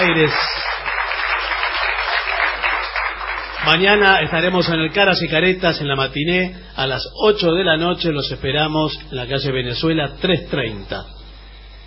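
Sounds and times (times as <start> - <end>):
audience applause in a theatre in Buenos Aires: 0.0 - 4.7
speech: 0.2 - 0.6, 3.6 - 11.2.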